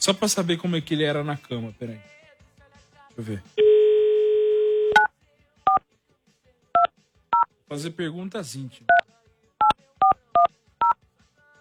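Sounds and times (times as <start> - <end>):
speech: 0.0 - 2.2, 3.2 - 3.9, 7.7 - 9.1
telephone dial tone: 3.6 - 5.1
telephone keypad beeps: 4.7 - 5.1, 9.6 - 11.0.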